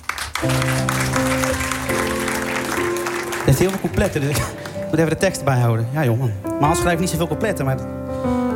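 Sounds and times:
audience clapping: 0.0 - 5.5
speech: 0.4 - 0.9, 3.4 - 8.4.

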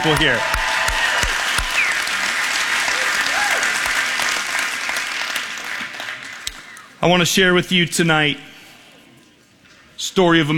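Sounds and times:
speech: 0.0 - 0.6, 7.0 - 8.5, 10.2 - 10.5
audience applause: 0.0 - 6.8.

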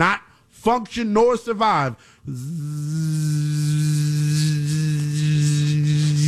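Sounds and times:
speech: 0.0 - 3.9
gnat buzzing: 2.3 - 6.2.

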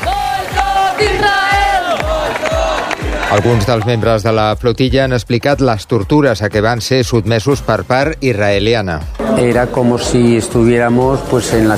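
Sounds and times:
crowd shouting protest chants: 0.0 - 3.9
speech: 3.3 - 11.7.

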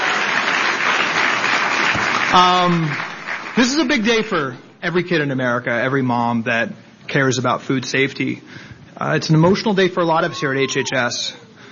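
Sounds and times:
audience round of applause: 0.0 - 4.2
speech: 2.3 - 11.4.

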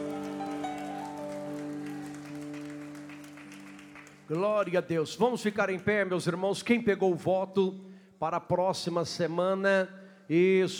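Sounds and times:
held keyboard or organ chord: 0.0 - 4.6
audience clapping: 0.0 - 6.1
speech: 4.3 - 10.7.

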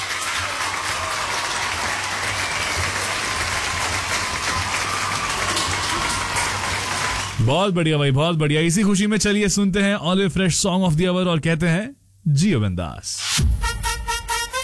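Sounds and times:
applause: 0.0 - 7.5
speech: 7.4 - 13.5.

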